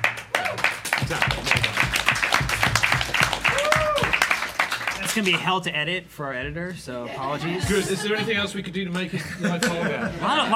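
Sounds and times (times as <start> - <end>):
audience applause: 0.0 - 5.5
speech: 1.1 - 1.7, 5.2 - 10.5
laughter: 7.0 - 10.5.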